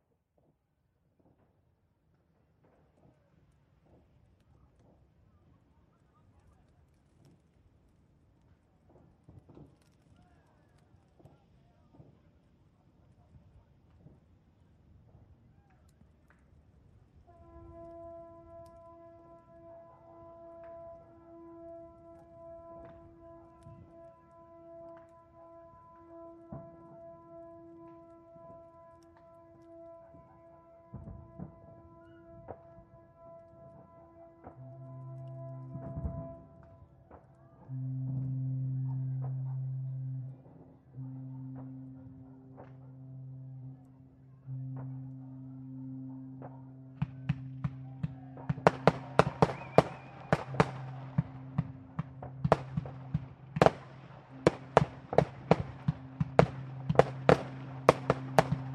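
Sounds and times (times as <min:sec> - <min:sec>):
new year ship foghorns: 0:17.3 - 0:58.7.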